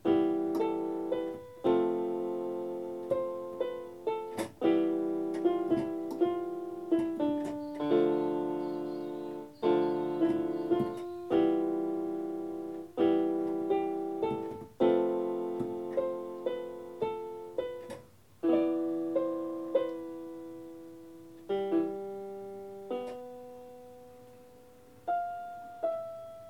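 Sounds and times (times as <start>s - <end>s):
keyboard practice improvisation: 0.0s - 26.4s.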